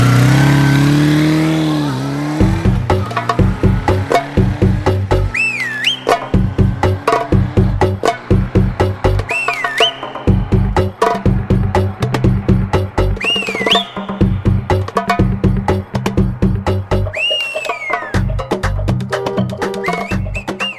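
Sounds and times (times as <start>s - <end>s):
oriental belly dance music: 0.2s - 20.7s.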